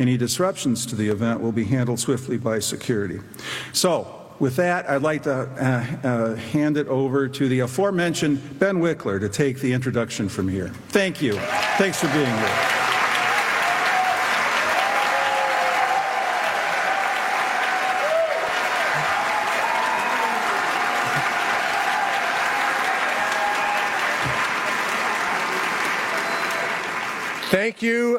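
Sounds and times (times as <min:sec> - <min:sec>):
speech: 0:00.0 - 0:12.8
audience applause: 0:11.3 - 0:27.6.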